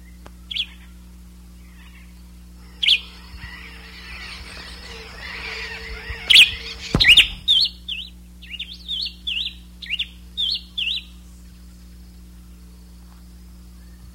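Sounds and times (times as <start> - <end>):
low hum: 2.4 - 8.6
high bird chirps: 2.6 - 9.5.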